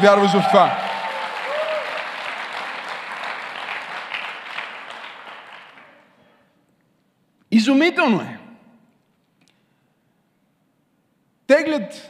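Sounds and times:
speech: 0.0s - 0.8s, 7.5s - 8.4s, 11.5s - 12.0s
audience applauding: 0.0s - 6.1s.

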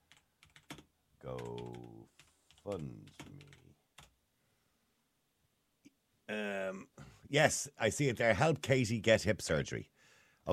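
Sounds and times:
computer keyboard typing: 0.1s - 4.2s
speech: 2.6s - 3.5s, 6.3s - 10.5s.

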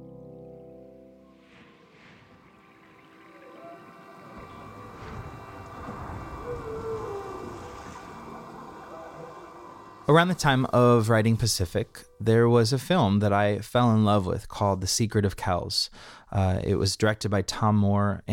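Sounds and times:
ocean waves: 1.4s - 11.4s
speech: 10.1s - 18.3s.

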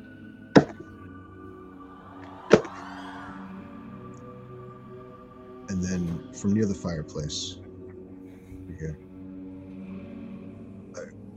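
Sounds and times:
knocks on a wooden table: 0.6s - 0.8s, 2.5s - 2.8s
speech: 5.7s - 7.6s, 8.8s - 9.0s.

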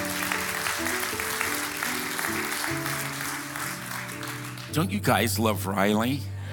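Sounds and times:
audience clapping and cheering: 0.0s - 4.9s
sustained keyboard chords: 0.0s - 6.1s
speech: 4.7s - 6.3s.

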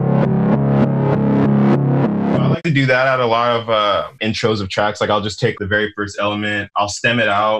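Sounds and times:
reversed synth pluck sample: 0.0s - 4.0s
speech: 2.6s - 7.5s.

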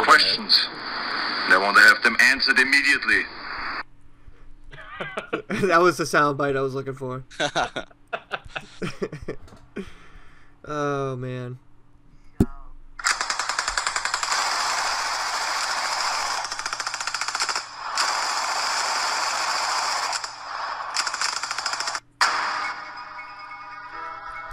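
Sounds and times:
speech: 0.2s - 3.4s, 5.0s - 10.0s, 10.6s - 11.7s
laughter: 4.7s - 5.7s, 7.3s - 9.9s
machine gun fire sound effect: 13.0s - 22.9s.

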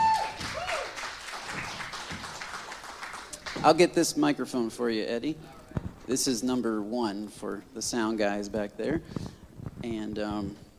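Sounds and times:
room full of people applauding: 0.0s - 3.8s
speech: 3.6s - 10.6s.

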